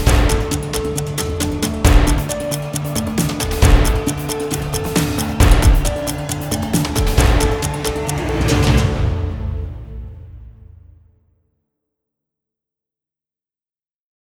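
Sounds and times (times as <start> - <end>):
news music without strings: 0.0 - 11.0.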